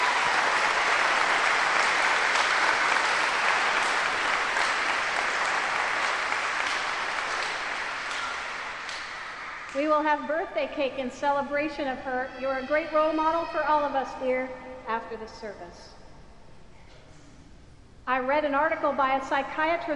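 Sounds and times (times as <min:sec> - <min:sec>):
audience applause for a birthday: 0:00.0 - 0:09.8
speech: 0:09.8 - 0:16.0, 0:18.1 - 0:19.9.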